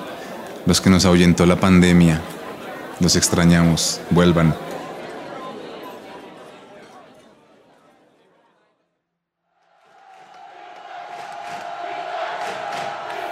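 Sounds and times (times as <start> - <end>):
speech: 0.7 - 2.3, 3.0 - 4.7
football stadium crowd cheering: 9.5 - 13.2.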